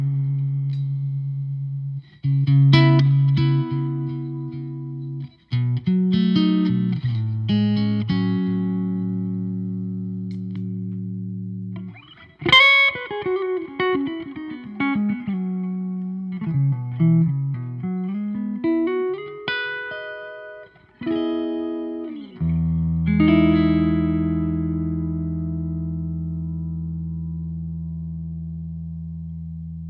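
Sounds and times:
clean PRS hollowbody IV maple spruce electric guitar: 0.0 - 29.8.

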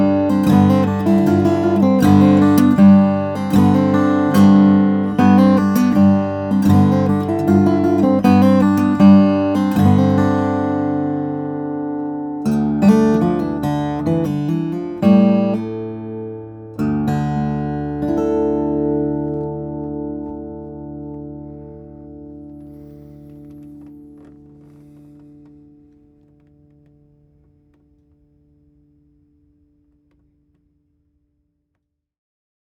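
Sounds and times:
steel-string flattop guitars: 0.0 - 25.8.

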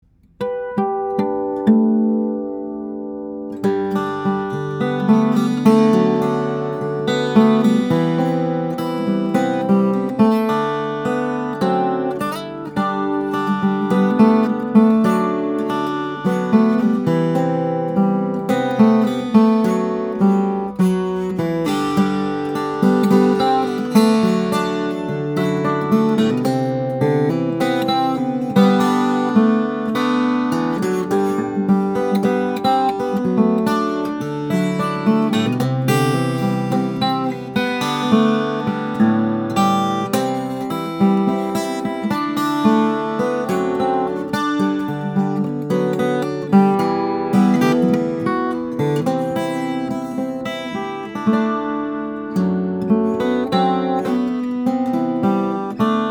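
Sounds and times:
guitars: 0.0 - 56.1.

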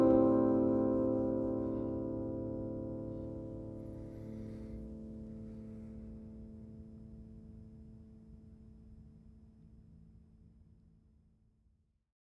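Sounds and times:
OM flattop steel-string guitar of Brazilian rosewood and European spruce: 0.0 - 4.7.

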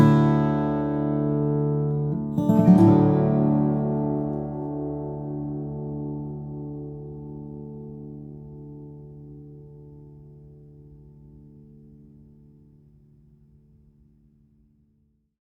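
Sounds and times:
Ryan Signature Nightingale flattop steel string guitar of Brazilian rosewood and cedar: 0.0 - 11.1.

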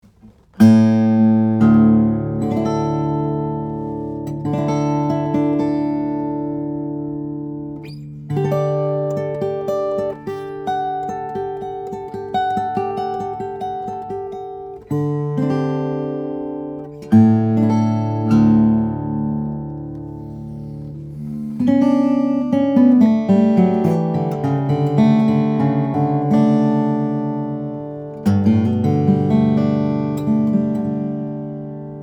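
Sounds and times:
guitars: 0.0 - 32.0.

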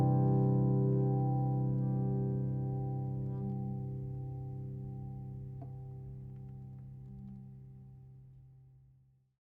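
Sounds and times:
steel-string flattop cutaway guitar of tamo ash and German spruce: 0.0 - 6.2.

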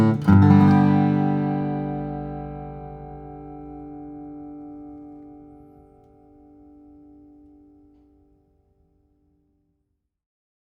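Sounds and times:
steel-string acoustic guitars of Indian rosewood and Adirondack spruce: 0.0 - 7.8.

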